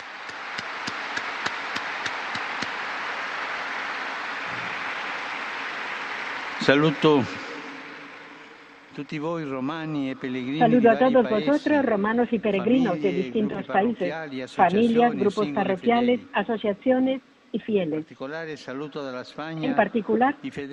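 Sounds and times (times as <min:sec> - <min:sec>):
crowd applause: 0:00.0 - 0:08.3
speech: 0:06.6 - 0:07.4, 0:09.0 - 0:20.7.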